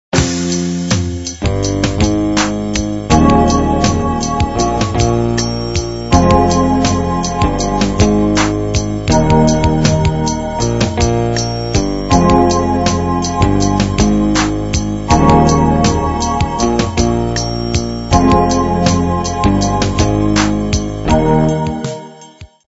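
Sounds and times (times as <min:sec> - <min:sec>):
rock music: 0:00.2 - 0:22.3.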